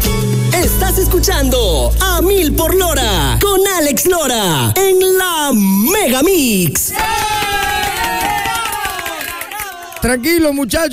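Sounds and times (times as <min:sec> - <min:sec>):
speech: 0:01.0 - 0:08.3, 0:10.0 - 0:10.9
crowd clapping: 0:06.7 - 0:10.5.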